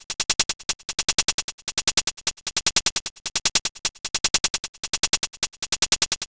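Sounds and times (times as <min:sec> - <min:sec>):
disco house percussion loop: 0:00.0 - 0:06.2.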